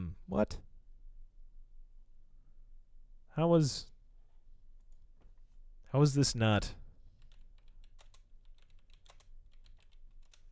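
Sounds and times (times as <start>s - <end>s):
speech: 0.3s - 0.7s, 3.4s - 3.9s, 5.9s - 6.8s
keystrokes on a computer keyboard while searching IMDb: 7.2s - 10.5s.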